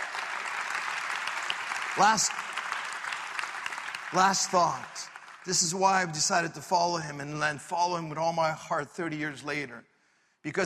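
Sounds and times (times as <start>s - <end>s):
audience applause: 0.0s - 6.7s
speech: 2.0s - 2.5s, 4.1s - 10.6s.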